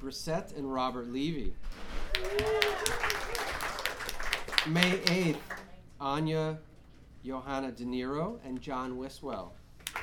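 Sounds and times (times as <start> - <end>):
speech: 0.0 - 3.3, 4.6 - 9.6
audience clapping at a live event: 2.1 - 5.7, 9.8 - 10.0.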